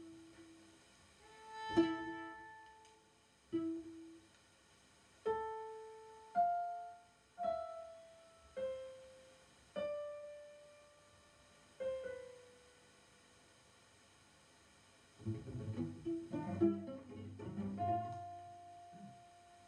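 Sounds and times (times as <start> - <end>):
two cellos at a birthday concert: 1.2 - 4.2, 15.2 - 19.6
piano at a birthday concert: 1.3 - 2.9, 5.2 - 13.0, 15.2 - 19.6.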